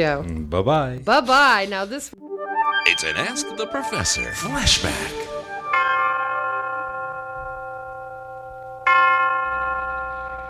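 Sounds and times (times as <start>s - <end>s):
speech: 0.0s - 2.2s, 2.8s - 5.4s
University of Detroit tower chimes ringing: 2.2s - 10.4s.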